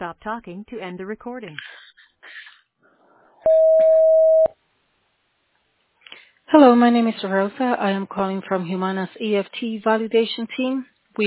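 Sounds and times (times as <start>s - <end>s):
speech: 0.0s - 1.8s, 6.5s - 11.2s
voicemail recording tone on a phone line: 3.5s - 4.5s.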